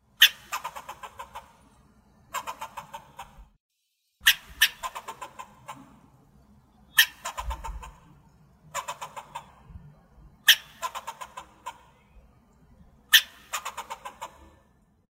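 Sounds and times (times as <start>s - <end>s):
squirrel for a listening exercise: 0.2s - 3.5s, 4.2s - 14.8s.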